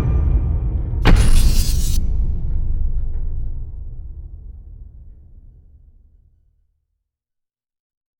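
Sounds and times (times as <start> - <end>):
percussion: 0.0 - 6.2.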